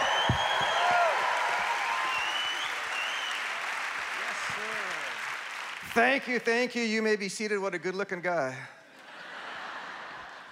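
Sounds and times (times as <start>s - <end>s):
church congregation applauding as a preacher is welcomed: 0.0s - 6.9s
speech: 6.0s - 8.8s
laughter: 8.9s - 10.5s.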